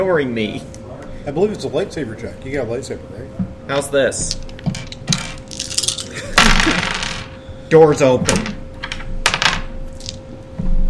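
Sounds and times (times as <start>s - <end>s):
speech: 0.0s - 4.8s, 7.7s - 8.5s
dice being rolled: 4.3s - 7.4s, 8.4s - 10.2s.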